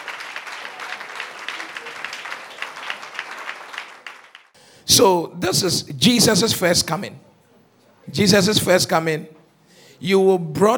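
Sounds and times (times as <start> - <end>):
audience clapping: 0.0 - 4.6
speech: 4.9 - 7.3, 8.1 - 9.4, 10.0 - 10.7.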